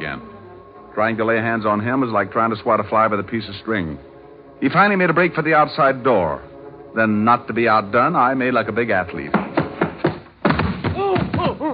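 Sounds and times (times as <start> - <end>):
speech: 1.0 - 9.4
heavy thumps of a person being tackled to the ground: 9.3 - 11.6
person grunting and groaning: 11.0 - 11.7.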